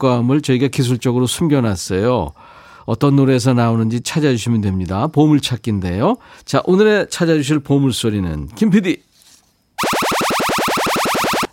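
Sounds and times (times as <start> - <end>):
speech: 0.0 - 9.1
alien laser attack sound effect with descending zaps: 9.8 - 11.5.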